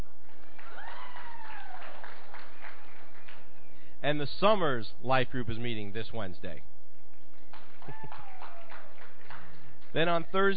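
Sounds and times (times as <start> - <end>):
audience clapping: 0.0 - 3.8, 7.1 - 10.5
speech: 4.0 - 6.7, 9.9 - 10.5.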